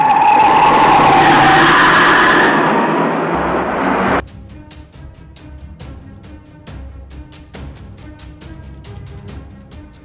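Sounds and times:
car engine roaring speeding away from an underground garage: 0.0s - 4.2s
car tire screech: 0.0s - 4.2s.

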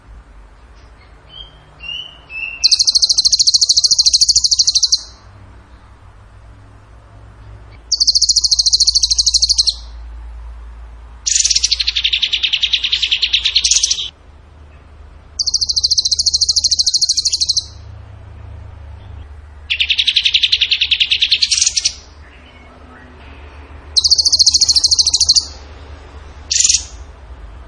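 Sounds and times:
bird trilling: 1.3s - 5.2s, 7.7s - 10.0s, 11.2s - 14.1s, 15.4s - 17.9s, 19.7s - 22.7s, 23.9s - 25.7s, 26.5s - 27.1s.

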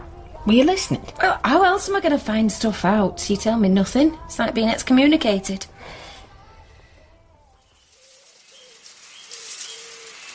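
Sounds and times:
speech: 0.4s - 6.0s
steady hiss: 5.8s - 10.3s
birds cooing: 7.8s - 10.3s.

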